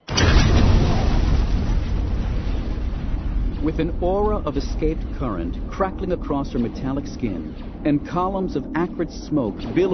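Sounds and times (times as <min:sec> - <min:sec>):
concussion missile explosion: 0:00.0 - 0:09.9
speech: 0:03.7 - 0:09.9.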